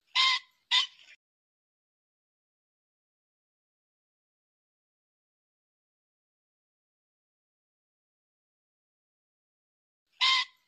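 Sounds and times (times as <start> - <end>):
pheasant squawking: 0.0 - 1.2, 10.2 - 10.6.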